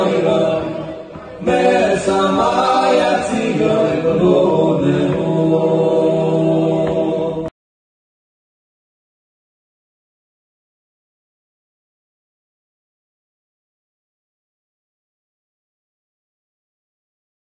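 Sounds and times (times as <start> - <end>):
choir singing zemiros a cappella: 0.0 - 7.5.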